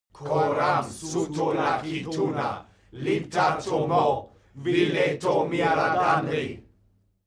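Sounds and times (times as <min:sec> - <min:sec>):
male crowd: 0:00.1 - 0:06.7.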